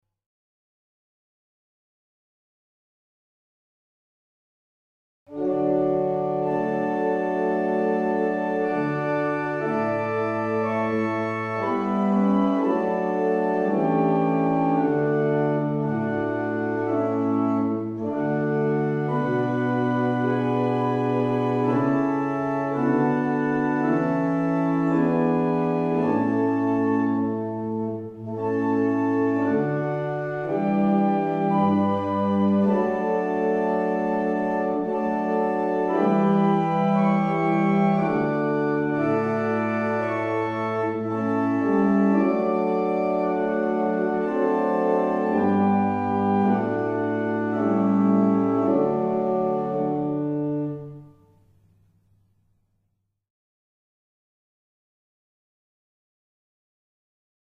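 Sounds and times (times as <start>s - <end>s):
barrel organs: 5.3s - 51.0s.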